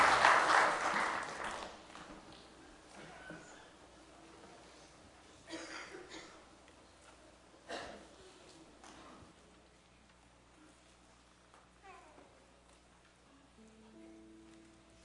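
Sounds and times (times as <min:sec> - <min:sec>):
audience applause: 0:00.0 - 0:02.0.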